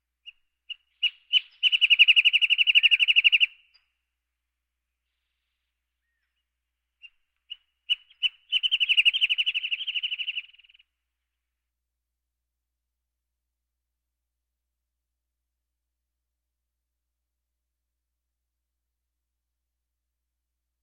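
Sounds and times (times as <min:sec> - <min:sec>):
birds: 0:00.2 - 0:04.0, 0:05.1 - 0:10.9.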